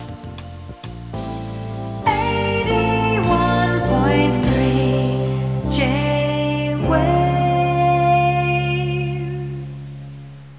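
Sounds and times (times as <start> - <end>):
person singing: 2.0 - 9.7.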